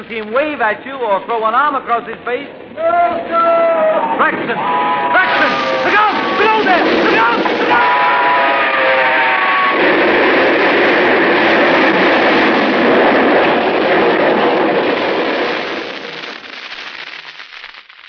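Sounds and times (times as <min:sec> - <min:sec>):
speech: 0:00.0 - 0:08.1
train engine rushing past: 0:03.9 - 0:14.8
train whistle: 0:07.7 - 0:10.0.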